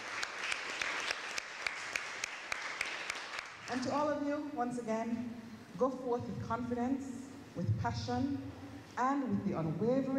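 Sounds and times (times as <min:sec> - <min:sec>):
round of applause: 0:00.0 - 0:03.9
speech: 0:03.7 - 0:10.1.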